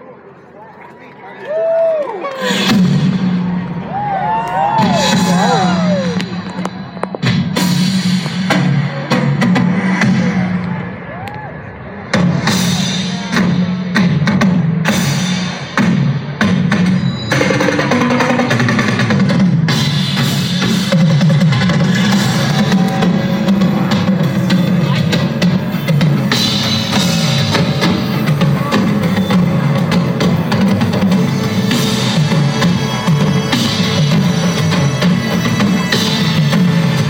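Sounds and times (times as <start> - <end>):
concert crowd cheering: 0.0 - 7.3, 10.4 - 12.2, 21.2 - 36.1
drum group playing live at the 2017 presidential inauguration welcome concert: 2.4 - 11.0, 12.0 - 37.0.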